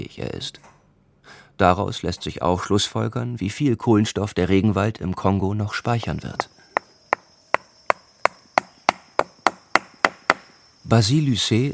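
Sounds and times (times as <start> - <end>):
speech: 0.0 - 6.6, 10.9 - 11.7
wooden block knocking on a metal tree corer: 6.8 - 10.5.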